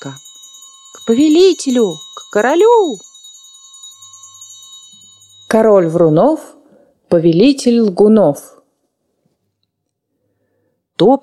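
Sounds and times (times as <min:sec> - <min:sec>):
speech: 0:00.0 - 0:00.3, 0:01.0 - 0:03.1, 0:05.5 - 0:08.6, 0:11.0 - 0:11.2
bell ringing: 0:00.0 - 0:06.5.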